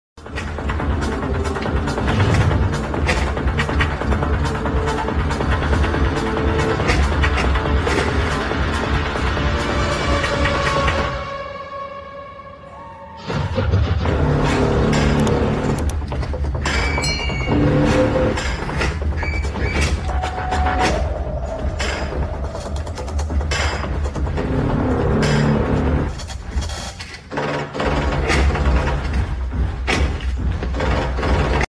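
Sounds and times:
climactic background music: 0.2s - 31.6s.

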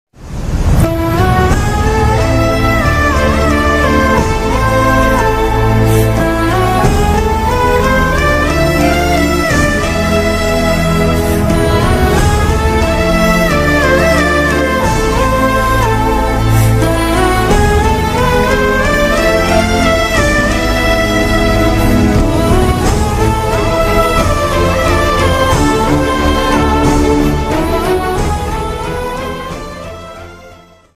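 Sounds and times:
sad background music ringtone: 0.2s - 30.9s.

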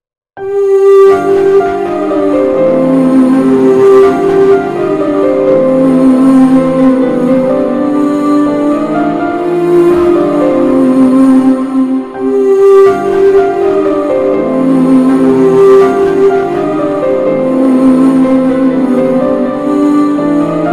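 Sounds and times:
sad emotional background music: 0.4s - 20.7s.

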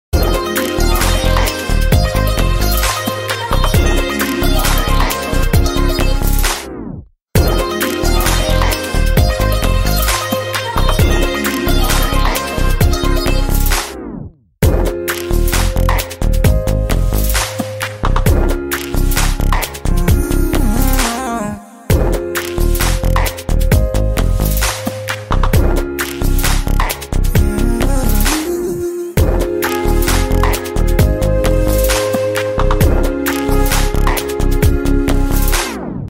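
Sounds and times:
Tamil karaoke background music ringtone: 0.2s - 6.4s, 7.4s - 13.7s, 14.8s - 35.6s.

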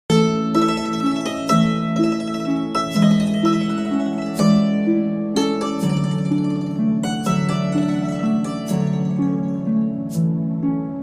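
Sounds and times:
classical instrumental music: 0.1s - 11.0s.

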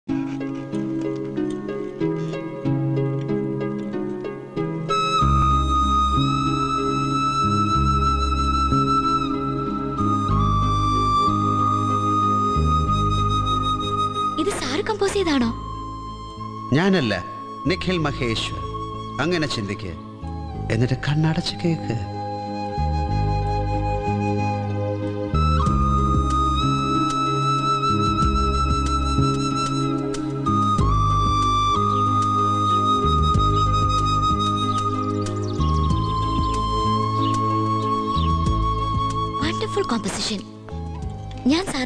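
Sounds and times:
flute background music: 0.1s - 41.8s.

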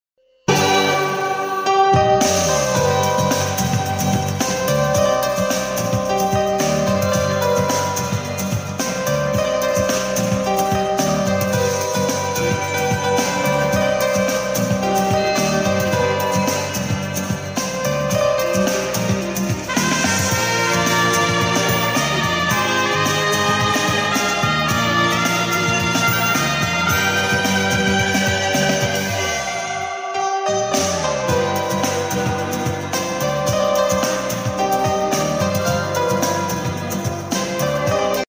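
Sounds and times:
piano music: 0.5s - 38.2s.

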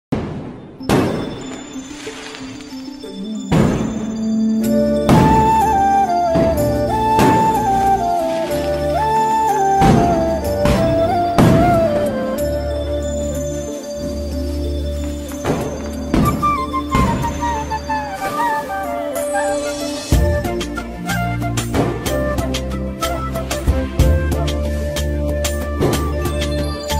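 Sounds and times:
Diwali special ringtone background music: 0.7s - 26.9s.

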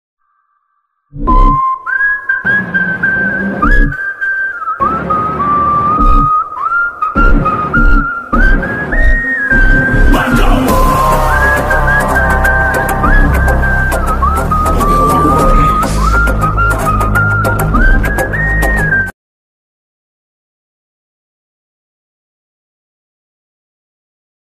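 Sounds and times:
whistled background music ringtone: 1.2s - 19.2s.

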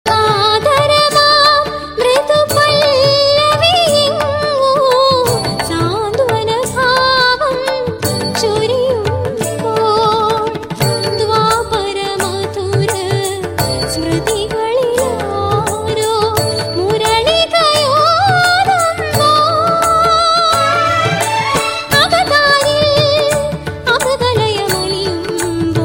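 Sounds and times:
Malayalam song: 0.1s - 25.7s.

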